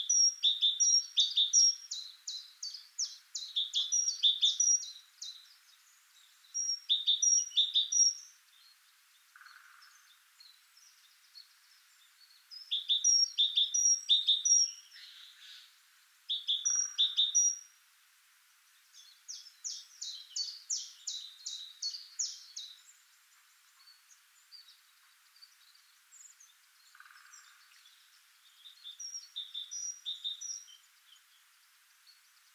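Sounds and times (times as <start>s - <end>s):
great tit calls: 0.0s - 17.7s, 18.8s - 32.5s.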